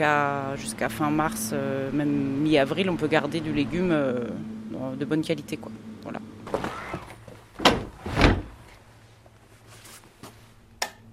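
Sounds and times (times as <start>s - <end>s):
speech: 0.0s - 6.9s
handling noises: 6.4s - 10.5s
door being shut on a cold storage room for vegetables: 6.5s - 8.6s.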